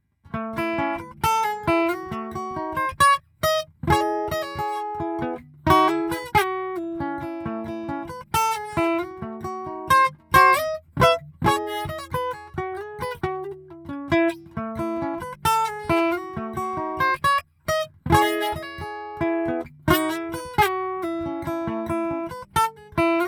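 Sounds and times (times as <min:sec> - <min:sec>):
Taylor 814 guitars recorded with DPA 4011: 0:00.3 - 0:23.2.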